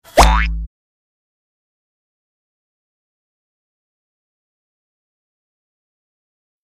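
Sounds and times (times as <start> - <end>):
suction boink: 0.1 - 0.7.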